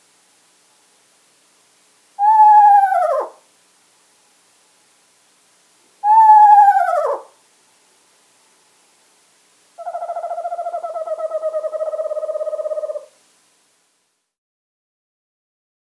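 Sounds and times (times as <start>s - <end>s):
Eastern screech owl calling: 2.2s - 3.4s, 6.0s - 7.4s, 9.8s - 13.2s.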